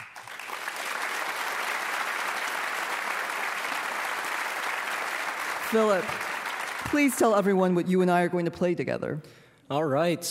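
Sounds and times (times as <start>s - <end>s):
audience applauding a 17-year-old violinist: 0.0s - 7.3s
speech: 5.7s - 10.3s.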